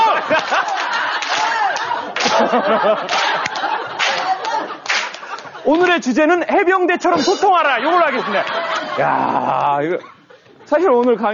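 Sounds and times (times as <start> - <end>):
audience doing marine-style clap: 0.0 - 6.0
laughter: 0.0 - 10.9
speech: 2.5 - 3.2, 5.6 - 10.1, 10.7 - 11.3.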